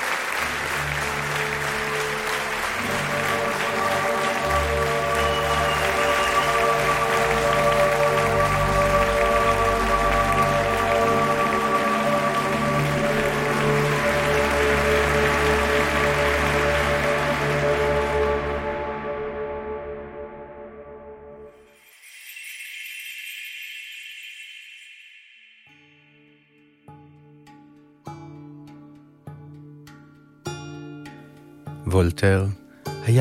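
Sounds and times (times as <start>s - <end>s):
theater audience clapping: 0.0s - 19.2s
speech: 32.2s - 33.1s.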